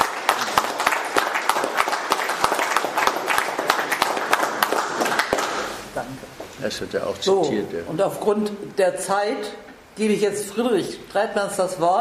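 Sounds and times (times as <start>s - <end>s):
audience applause: 0.0s - 5.8s
speech: 6.6s - 11.9s.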